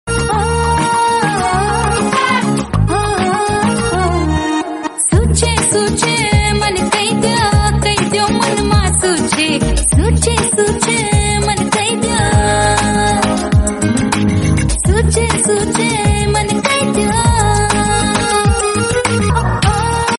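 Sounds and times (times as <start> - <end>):
Sri Lankan romantic ringtone music: 0.1 - 20.1.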